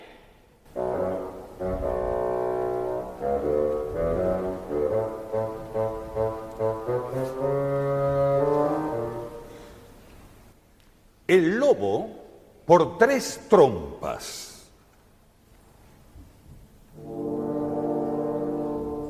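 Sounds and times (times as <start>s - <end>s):
bassoon playing a melody: 0.7s - 9.8s, 16.9s - 19.0s
speech: 12.7s - 14.4s.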